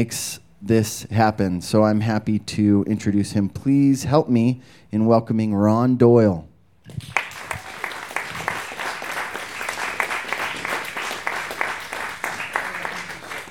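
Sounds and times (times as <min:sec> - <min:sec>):
speech: 0:00.0 - 0:07.3
audience applause: 0:06.9 - 0:13.5.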